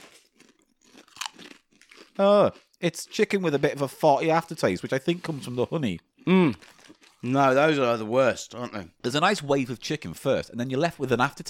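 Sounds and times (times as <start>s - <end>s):
crisps being crunched and chewed: 0.0s - 2.7s, 6.4s - 7.3s
speech: 2.2s - 11.4s.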